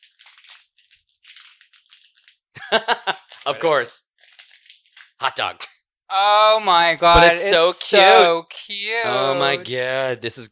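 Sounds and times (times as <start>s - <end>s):
foil blind box packaging crinkling and tearing: 0.0s - 2.4s, 3.1s - 3.6s, 4.2s - 5.2s
speech: 2.7s - 4.1s, 5.2s - 10.4s.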